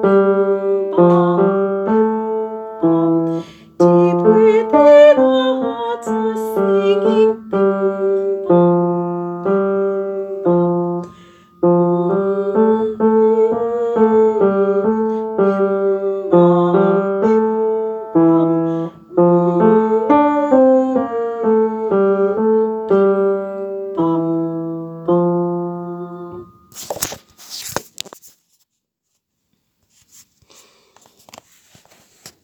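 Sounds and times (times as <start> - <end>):
tenor: 0.0 - 27.0.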